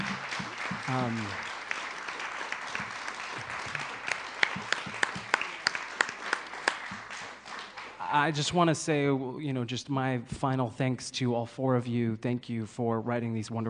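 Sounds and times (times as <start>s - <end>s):
audience applause: 0.0s - 8.4s
speech: 0.9s - 1.4s, 8.1s - 13.6s.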